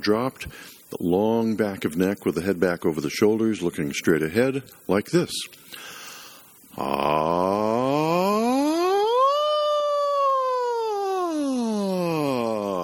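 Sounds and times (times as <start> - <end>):
speech: 0.0 - 6.0, 6.8 - 7.6
vocal siren exercise voice gliding through range: 6.7 - 12.8.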